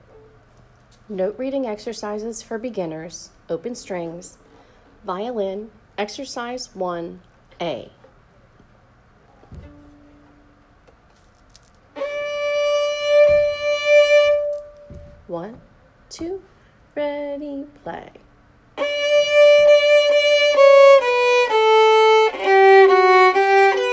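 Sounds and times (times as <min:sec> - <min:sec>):
violin open strings: 0:12.0 - 0:15.0, 0:18.8 - 0:23.9.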